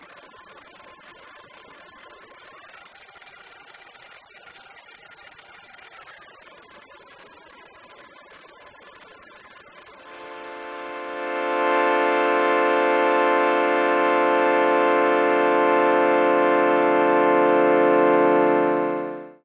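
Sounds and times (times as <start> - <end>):
Juno-6 synthesizer through Boss DE-200 digital delay with pitch overdubbing: 10.0 - 19.4.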